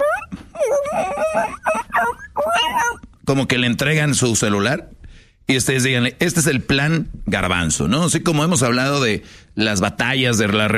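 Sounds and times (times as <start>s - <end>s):
person imitating a whimpering puppy: 0.0s - 3.1s
speech: 0.9s - 2.2s, 3.3s - 10.7s.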